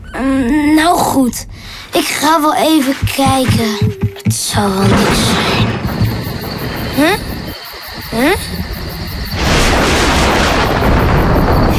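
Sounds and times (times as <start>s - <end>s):
speech: 0.2s - 6.0s, 7.0s - 7.3s, 8.2s - 8.7s
thunder: 4.7s - 11.7s.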